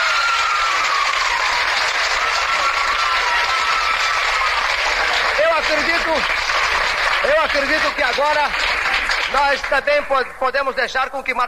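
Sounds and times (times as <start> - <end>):
cheers and whistles: 0.0 - 4.7
crowd applause: 0.0 - 10.8
speech: 5.7 - 11.4.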